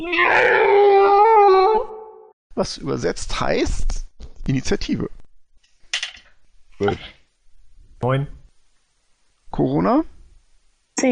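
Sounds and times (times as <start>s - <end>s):
speech: 0.0s - 0.8s, 2.6s - 5.2s, 6.8s - 7.2s, 8.0s - 8.4s, 9.6s - 10.2s, 11.0s - 11.1s
monstrous owlbear-like creature screaming: 0.0s - 2.3s.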